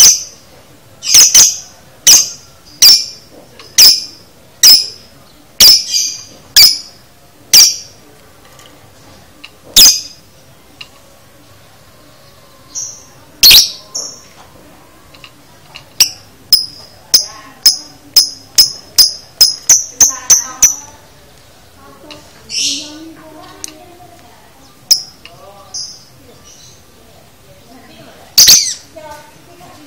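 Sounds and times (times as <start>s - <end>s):
lovebird chattering with shrill squeaks, chirps, clicks and rattling: 0.0s - 0.4s, 1.0s - 8.0s, 9.8s - 10.2s, 12.8s - 14.3s, 15.9s - 21.1s, 22.1s - 23.8s, 24.6s - 26.8s, 28.3s - 28.9s.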